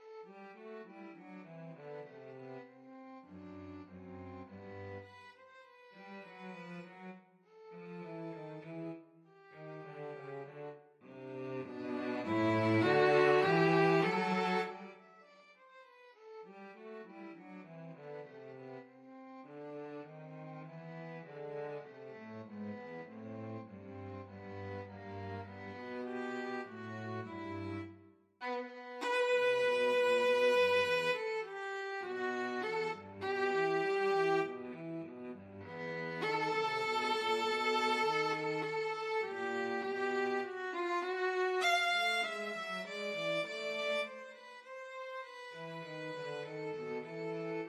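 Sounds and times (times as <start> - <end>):
violin and cello duet: 0.0 - 47.6.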